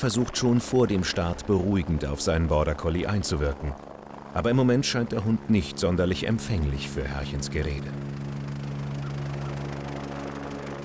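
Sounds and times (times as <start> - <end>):
speech: 0.0 - 8.3
helicopter engine droning: 0.0 - 10.8.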